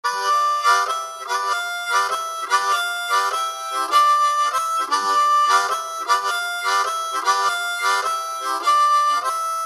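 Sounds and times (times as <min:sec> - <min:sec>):
harmonica played with tongue technique: 0:00.0 - 0:09.6.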